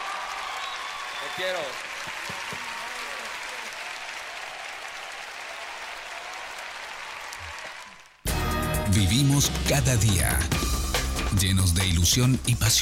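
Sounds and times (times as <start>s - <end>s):
audience applause: 0.0s - 8.3s
speech: 1.2s - 2.7s, 9.0s - 12.8s.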